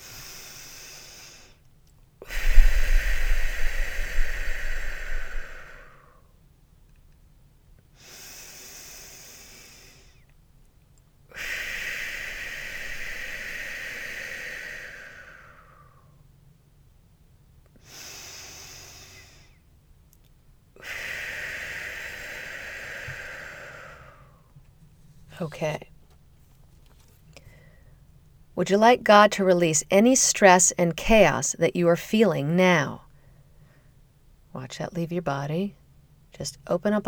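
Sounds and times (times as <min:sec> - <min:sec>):
slow deep breaths in through the nose and out through pursed lips in a guided relaxation exercise: 0:00.0 - 0:01.6, 0:02.2 - 0:06.3, 0:08.0 - 0:10.3, 0:11.3 - 0:16.2, 0:20.8 - 0:24.6, 0:27.4 - 0:28.1
speech: 0:25.4 - 0:25.9, 0:28.6 - 0:33.0, 0:34.7 - 0:37.0.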